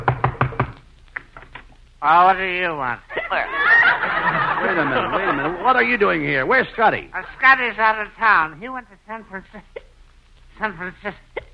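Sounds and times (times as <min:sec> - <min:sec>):
knocking on door: 0:00.0 - 0:00.8
speech: 0:02.0 - 0:03.8, 0:04.6 - 0:09.8, 0:10.6 - 0:11.4
laughter: 0:03.1 - 0:06.3, 0:07.2 - 0:07.6.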